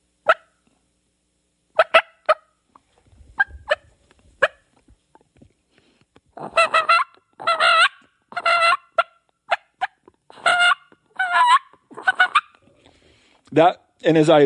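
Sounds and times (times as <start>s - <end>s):
turkey call imitating a hen, clucking, yelping and purring: 0.0s - 0.6s, 1.8s - 2.6s, 3.4s - 4.7s, 6.4s - 12.7s
speech: 13.6s - 14.4s.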